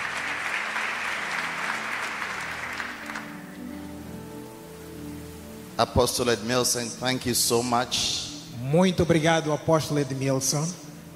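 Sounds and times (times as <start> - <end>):
audience clapping hands: 0.0 - 3.7
speech: 5.8 - 10.8.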